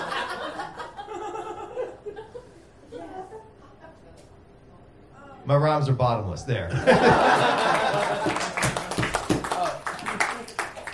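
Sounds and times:
people chuckling: 0.0 - 3.9, 6.7 - 8.8
speech: 5.5 - 8.5
coffee house applause: 7.7 - 10.9.

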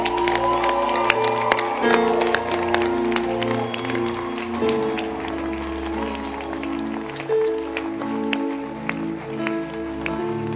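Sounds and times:
crowd clapping: 0.0 - 10.5.

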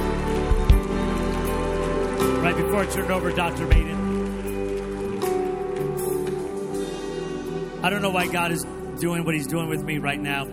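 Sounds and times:
audience hand clapping: 0.0 - 7.2
speech: 2.2 - 4.0, 7.8 - 10.5.

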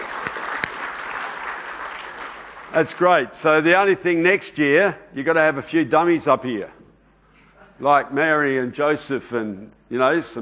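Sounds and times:
audience applause: 0.0 - 3.3
speech: 2.7 - 6.8, 7.8 - 10.4.

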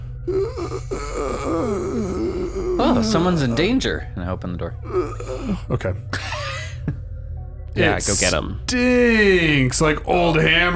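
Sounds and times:
speech: 0.2 - 2.2, 2.9 - 6.2, 6.8 - 7.0, 7.8 - 10.7
gravelly croaking moans for help: 0.2 - 6.8.

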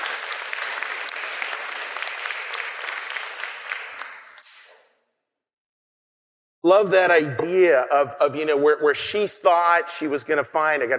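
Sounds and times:
audience applause: 0.0 - 4.4
speech: 6.6 - 10.9.

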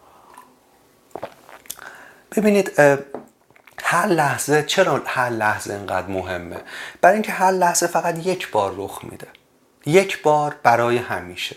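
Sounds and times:
person drinking a sip of water: 0.2 - 2.2, 3.2 - 3.8
speech: 2.4 - 3.1, 3.9 - 11.5.

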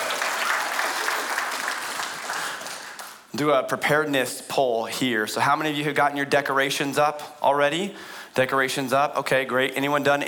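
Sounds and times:
audience clapping: 0.0 - 3.3
speech: 3.4 - 10.2.

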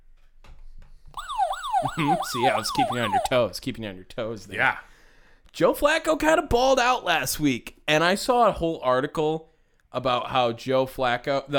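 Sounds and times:
siren alarm sound effect: 1.2 - 3.4
speech: 1.9 - 4.9, 5.5 - 11.5.

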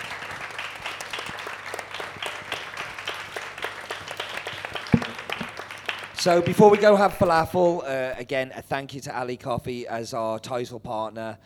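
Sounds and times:
audience applause: 0.0 - 6.8
speech: 6.2 - 11.4.

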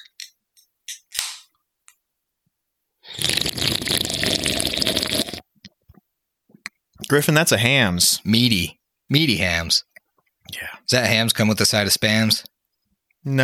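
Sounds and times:
slurping a drink: 3.1 - 5.5
speech: 3.4 - 4.1, 7.1 - 9.9, 10.5 - 12.5, 13.2 - 13.4.

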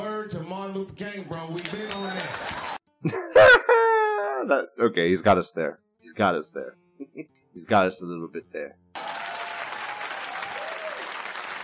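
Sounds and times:
speech: 0.3 - 3.8, 4.4 - 9.2
audience clapping: 1.4 - 2.8, 9.0 - 11.6.

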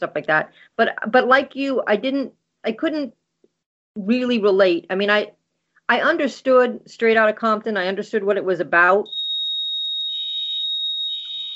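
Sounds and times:
speech: 0.0 - 3.2, 4.0 - 9.2
building sprinkler system alarm tone: 9.0 - 11.5.

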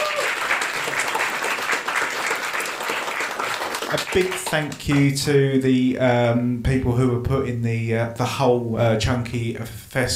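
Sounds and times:
audience applause: 0.0 - 5.1
speech: 3.9 - 10.1.

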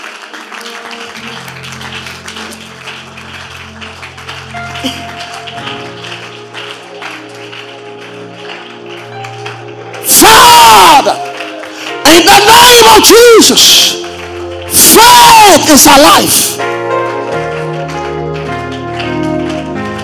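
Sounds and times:
audience clapping hands: 0.0 - 16.6, 17.6 - 20.0
speech: 4.8 - 5.1, 13.0 - 14.0, 15.0 - 16.5.

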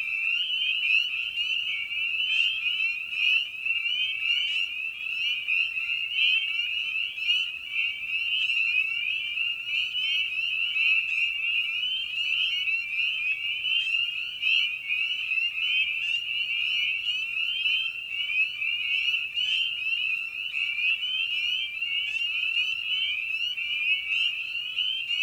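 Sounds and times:
spring peepers peeping in a dense chorus: 0.0 - 25.2.

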